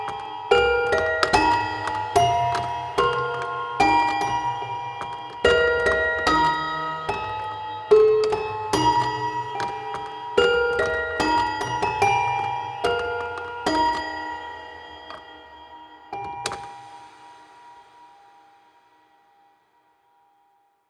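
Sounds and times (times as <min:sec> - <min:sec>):
toy piano: 0:00.0 - 0:15.2.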